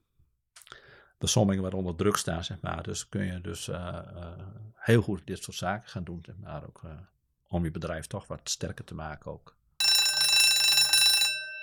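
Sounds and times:
speech: 1.2s - 9.6s
loud electric bell ringing: 9.8s - 11.6s.

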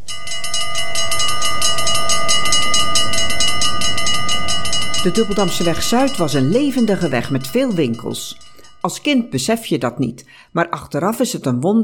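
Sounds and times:
railway crossing bells ringing: 0.0s - 10.0s
speech: 5.0s - 11.8s.

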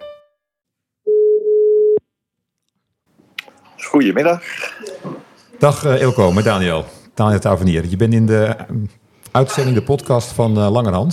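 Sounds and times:
telephone ringing tone: 1.1s - 2.0s
speech: 3.9s - 11.1s.

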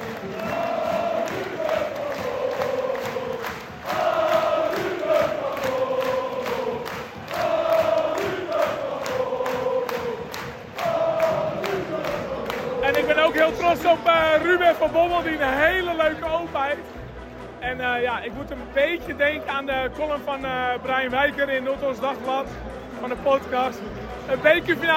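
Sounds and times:
football fans chanting: 0.0s - 16.2s
football fans clapping: 0.0s - 17.4s
speech: 14.8s - 17.0s, 17.6s - 24.9s.

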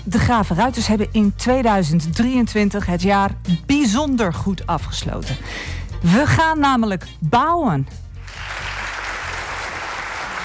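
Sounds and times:
speech: 0.1s - 8.5s
applause: 8.2s - 10.4s.

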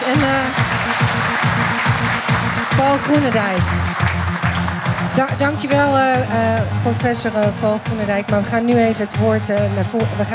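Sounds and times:
audience applause: 0.0s - 5.8s
speech: 0.1s - 1.9s, 2.8s - 4.1s, 5.2s - 10.3s.

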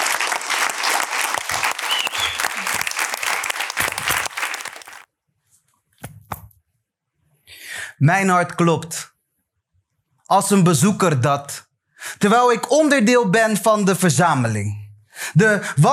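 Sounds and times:
audience applause: 0.0s - 5.0s
speech: 8.0s - 9.1s, 10.3s - 14.8s, 15.4s - 15.9s.

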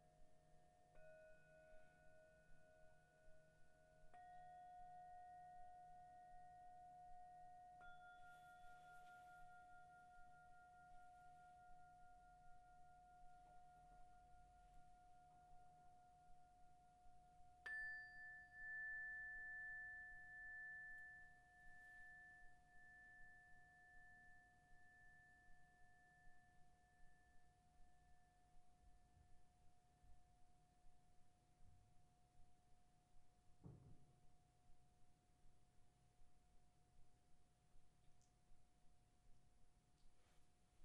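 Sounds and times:
singing bowls ringing: 1.0s - 15.8s, 17.6s - 26.3s
soft knock: 33.6s - 34.1s.

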